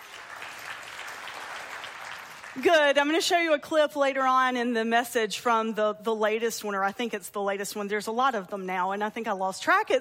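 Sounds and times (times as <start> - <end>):
church audience applauding: 0.0 - 2.8
speech: 2.6 - 9.9.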